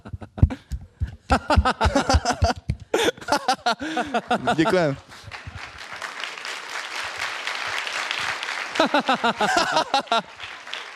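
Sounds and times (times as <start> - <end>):
laughter: 0.0 - 5.5, 8.7 - 10.6
speech: 1.3 - 2.3, 3.8 - 5.2, 8.8 - 10.6
applause: 3.8 - 10.9.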